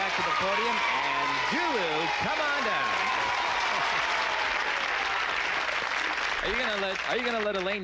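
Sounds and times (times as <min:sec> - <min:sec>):
studio audience cheering and applauding: 0:00.0 - 0:07.8
speech: 0:00.4 - 0:03.2, 0:06.4 - 0:07.8.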